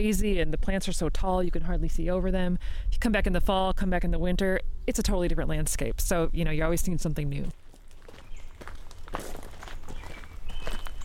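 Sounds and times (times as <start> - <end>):
speech: 0.0 - 7.6
American robin singing: 5.9 - 11.0
footsteps crunching: 7.4 - 11.0.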